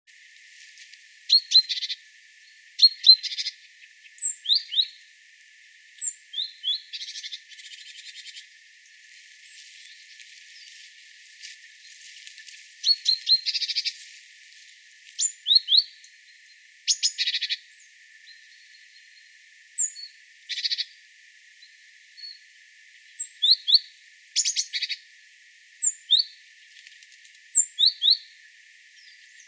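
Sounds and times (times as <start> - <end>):
great tit calls with whistles and churring rattle: 1.3 - 2.0, 2.8 - 5.0, 6.0 - 8.5, 12.8 - 14.0, 15.2 - 16.1, 16.9 - 19.2, 19.8 - 21.0, 23.1 - 25.0, 25.8 - 26.7, 27.4 - 28.3.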